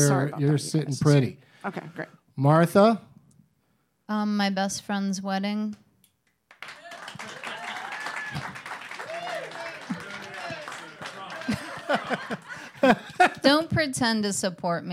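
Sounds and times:
speech: 0:00.0 - 0:03.1, 0:04.1 - 0:05.8, 0:11.5 - 0:14.9
audience round of applause: 0:06.5 - 0:13.4
people laughing: 0:06.8 - 0:13.6
overlapping voices and chatter: 0:09.0 - 0:12.6.

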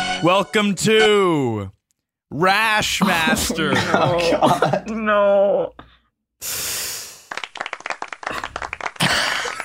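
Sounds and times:
speech: 0:00.2 - 0:06.8
laughter: 0:03.0 - 0:05.0
applause: 0:07.2 - 0:09.6.

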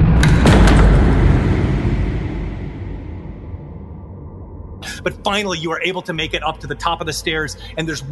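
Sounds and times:
door slamming shut: 0:00.1 - 0:03.8
speech: 0:05.3 - 0:08.0.

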